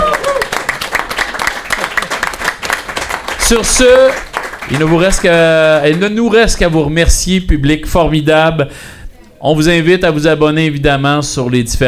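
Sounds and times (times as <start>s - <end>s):
audience applause: 0.0s - 6.0s
speech: 3.5s - 11.8s.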